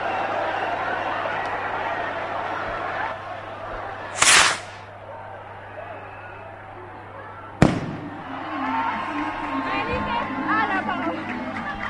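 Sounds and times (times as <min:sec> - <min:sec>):
lively crowd voices: 0:00.0 - 0:11.8
chupinazo rocket bang: 0:04.2 - 0:04.9
chupinazo rocket hissing whoosh opening the Barbastro festival: 0:04.2 - 0:04.9.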